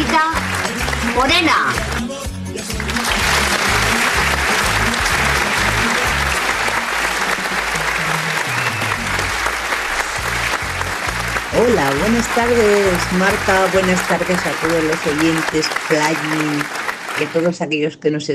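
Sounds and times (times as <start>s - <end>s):
radio studio audience applause: 0.0s - 17.6s
speech: 1.2s - 1.9s, 11.6s - 18.3s.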